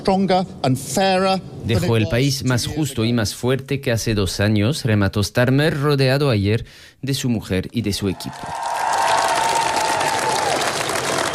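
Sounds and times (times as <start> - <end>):
speech: 0.0 - 8.8
crowd applauding: 8.2 - 11.3.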